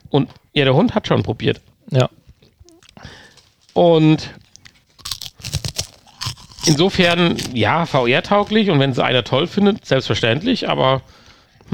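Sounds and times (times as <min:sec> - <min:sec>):
speech: 0:00.1 - 0:02.2, 0:03.8 - 0:04.4, 0:06.6 - 0:11.1
chewing crunchy snack pieces: 0:02.3 - 0:03.4, 0:04.3 - 0:09.9.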